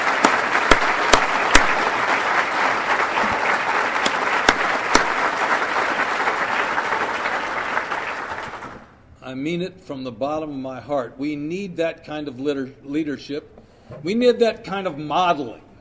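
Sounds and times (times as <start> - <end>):
audience applause: 0.0 - 8.9
speech: 9.4 - 15.6.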